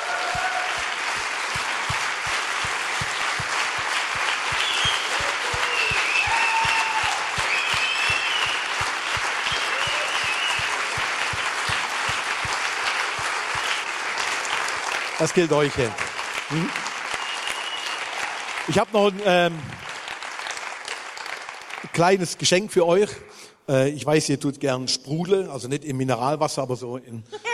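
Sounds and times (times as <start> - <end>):
faint cheers: 0.0 - 1.2, 4.5 - 11.0
sustained audience applause: 0.0 - 22.2
speech: 15.2 - 16.8, 18.7 - 19.8, 22.0 - 27.4.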